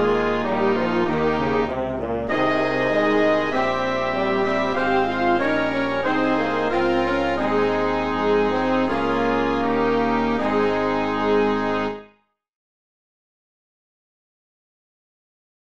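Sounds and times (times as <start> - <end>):
philharmonic band playing hymns: 0.0 - 12.0.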